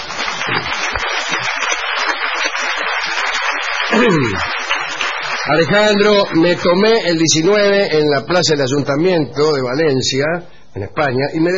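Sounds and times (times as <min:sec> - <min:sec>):
theatre audience applause: 0:00.0 - 0:07.0
speech: 0:04.0 - 0:04.5, 0:05.5 - 0:11.5.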